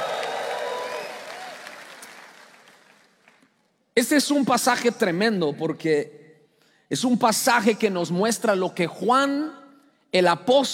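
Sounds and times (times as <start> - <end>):
scattered shouts and whoops: 0.0 - 1.9
crowd cheering: 0.0 - 3.0
applause: 0.0 - 3.7
speech: 4.0 - 6.2, 6.9 - 10.7.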